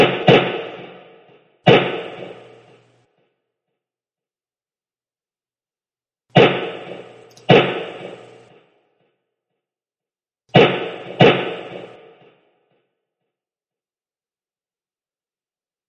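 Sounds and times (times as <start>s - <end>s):
rifle gunshots: 0.0s - 3.0s, 6.4s - 8.6s, 10.5s - 12.3s.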